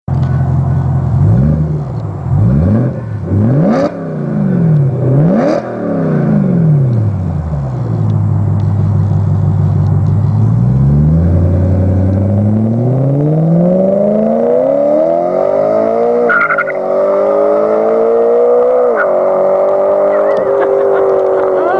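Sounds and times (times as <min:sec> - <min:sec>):
BMW M3 custom exhaust: 0:00.1 - 0:21.7
laughter: 0:20.2 - 0:21.7.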